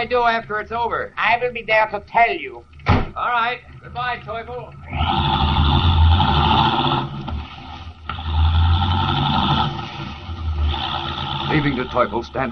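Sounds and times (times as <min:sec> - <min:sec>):
speech: 0:00.0 - 0:05.6, 0:11.5 - 0:12.5
car driving rapidly away along a road: 0:04.8 - 0:12.5.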